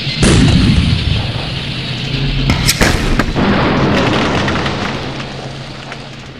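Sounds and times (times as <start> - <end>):
heavy cannon-like tank fire boom: 0.1 - 1.5, 2.4 - 5.9.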